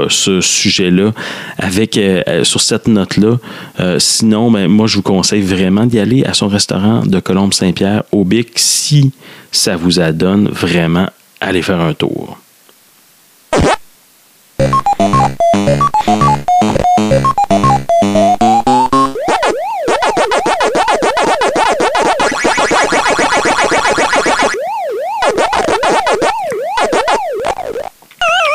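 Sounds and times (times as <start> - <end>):
speech: 0.0 - 12.4
Pac-Man arcade game sounds: 14.6 - 28.4.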